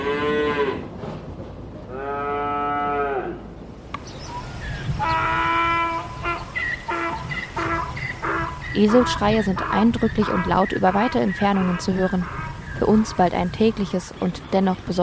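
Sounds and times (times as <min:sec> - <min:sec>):
cows mooing: 0:00.0 - 0:00.9, 0:01.9 - 0:03.5, 0:05.0 - 0:13.5
speech: 0:08.8 - 0:15.0.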